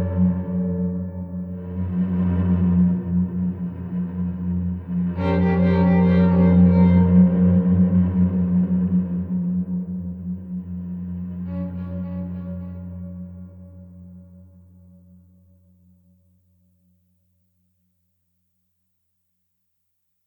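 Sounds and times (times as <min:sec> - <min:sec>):
creepy ambient music: 0:00.0 - 0:15.1.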